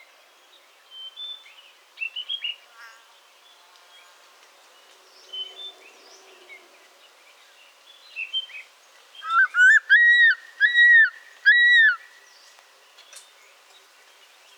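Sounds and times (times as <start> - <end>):
Spilornis cheela ricketti crested serpent eagle: 9.2 - 12.1.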